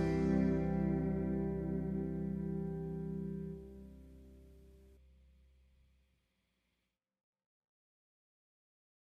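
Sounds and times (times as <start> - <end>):
harp: 0.0 - 4.3.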